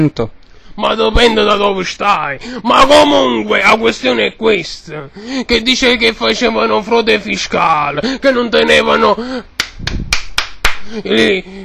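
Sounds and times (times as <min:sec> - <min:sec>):
speech: 0:00.0 - 0:10.0, 0:10.8 - 0:11.6
applause: 0:09.6 - 0:10.9.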